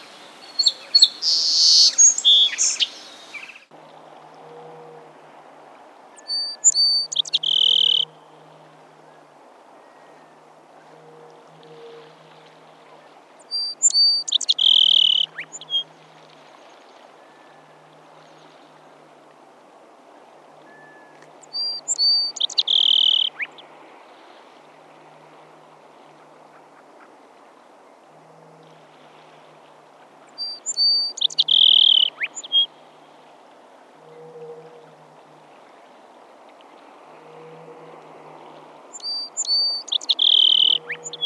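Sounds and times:
song sparrow: 0:00.0 - 0:03.7, 0:06.2 - 0:08.1, 0:13.5 - 0:15.8, 0:20.7 - 0:23.7, 0:30.4 - 0:32.7, 0:38.9 - 0:41.2.

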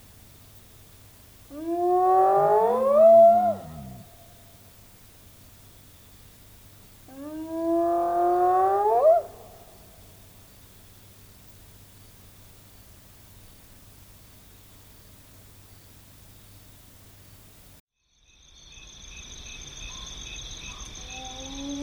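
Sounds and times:
hyena calling: 0:00.0 - 0:05.3, 0:07.0 - 0:10.4.

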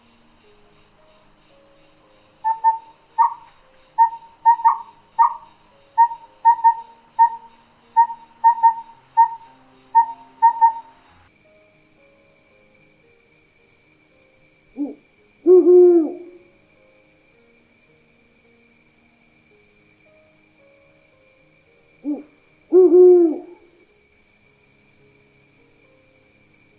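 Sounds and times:
calm night forest ambience: 0:00.0 - 0:26.7
mystical owl hooting in a calm night forest: 0:02.4 - 0:10.9, 0:14.8 - 0:16.5, 0:22.0 - 0:23.8.

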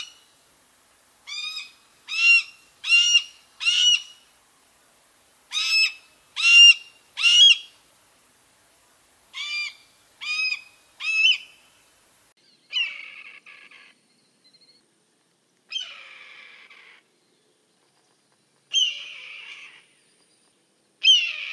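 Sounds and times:
red-tailed hawk calling: 0:00.0 - 0:00.4, 0:01.2 - 0:04.3, 0:05.5 - 0:07.8, 0:09.3 - 0:11.8.

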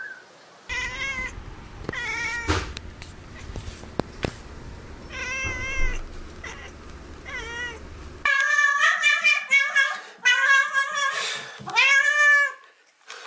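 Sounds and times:
kitten meowing: 0:00.7 - 0:02.6, 0:05.1 - 0:11.1, 0:11.7 - 0:12.6.

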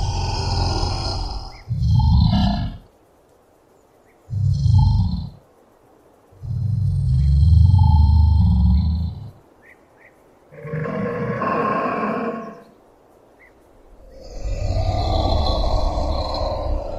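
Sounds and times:
Komodo dragon: 0:00.0 - 0:02.9, 0:04.3 - 0:05.4, 0:06.3 - 0:09.4, 0:10.5 - 0:12.7, 0:14.0 - 0:16.9.

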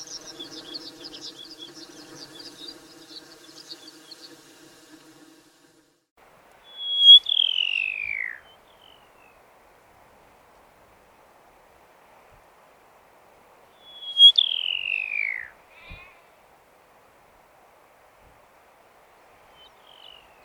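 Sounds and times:
pipit calls of short thin high notes: 0:00.0 - 0:04.6, 0:06.6 - 0:09.4, 0:13.7 - 0:16.3, 0:19.5 - 0:20.4.

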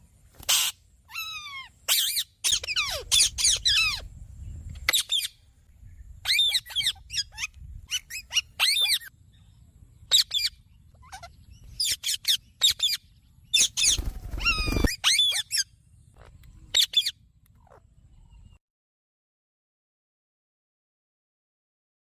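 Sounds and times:
parrot: 0:00.4 - 0:04.1, 0:06.2 - 0:09.1, 0:10.1 - 0:18.6.

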